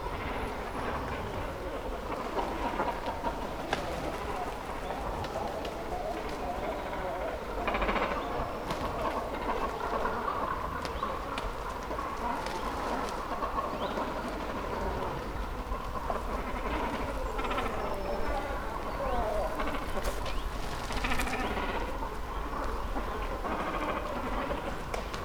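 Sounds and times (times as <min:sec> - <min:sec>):
great cormorant colony croaking: 0:00.1 - 0:25.2.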